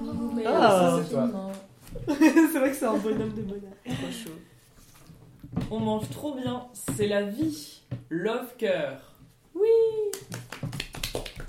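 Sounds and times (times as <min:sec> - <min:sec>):
speech: 0:00.4 - 0:04.5, 0:05.4 - 0:10.4
small group of people clapping: 0:10.0 - 0:11.4.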